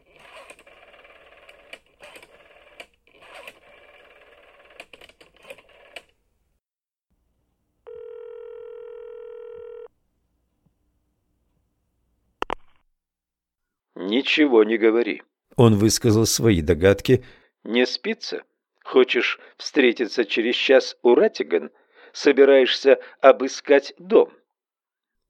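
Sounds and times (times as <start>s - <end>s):
steady telephone tone: 7.8s - 9.9s
speech: 14.1s - 24.4s.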